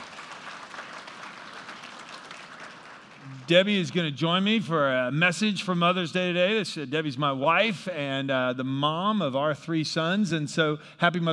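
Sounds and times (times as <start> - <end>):
crowd applauding: 0.0 - 4.0
speech: 3.5 - 11.3.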